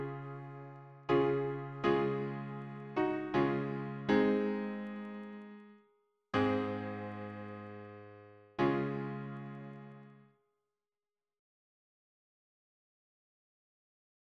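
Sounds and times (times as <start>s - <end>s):
piano harmony: 0.0s - 5.7s, 6.4s - 10.2s.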